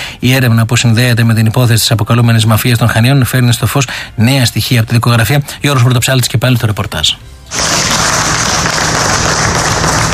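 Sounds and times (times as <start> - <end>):
speech: 0.2 - 7.8
relatives and friends applauding outside the Chania courthouse: 7.5 - 10.1.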